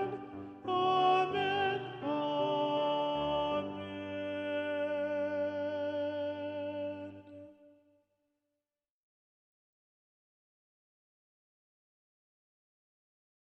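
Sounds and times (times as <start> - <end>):
soprano singing: 0.0 - 7.7.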